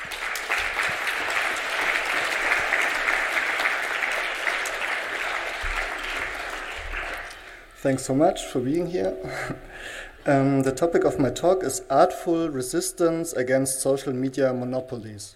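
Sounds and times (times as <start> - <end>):
audience applause: 0.0 - 7.7
speech: 7.8 - 15.3.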